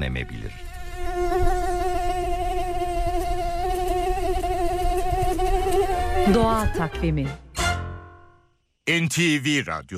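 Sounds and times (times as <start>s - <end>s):
speech: 0.0s - 1.5s, 6.3s - 7.4s, 8.9s - 9.9s
female mosquito wings whining in a high-pitched buzz: 0.3s - 6.8s.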